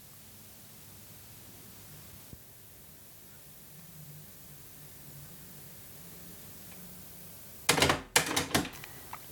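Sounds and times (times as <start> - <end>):
cassette deck auto-reverse mechanism whirring rattle: 7.7 - 8.9.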